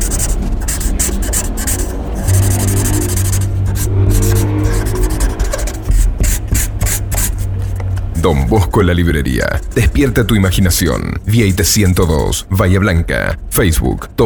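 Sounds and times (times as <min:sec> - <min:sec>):
pencil scratching on paper: 0:00.0 - 0:07.5, 0:11.3 - 0:12.1
faint low hum: 0:00.0 - 0:14.2
speech: 0:08.2 - 0:14.2.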